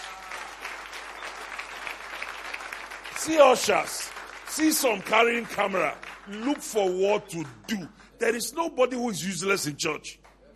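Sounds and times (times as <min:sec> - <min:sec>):
church audience applauding: 0:00.0 - 0:08.4
speech: 0:03.2 - 0:10.2.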